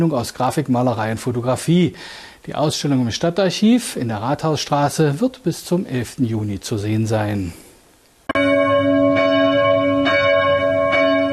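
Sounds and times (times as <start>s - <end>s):
speech: 0.0s - 7.6s
bells of the Christuskirche in Amfort ringing for service: 8.3s - 11.3s.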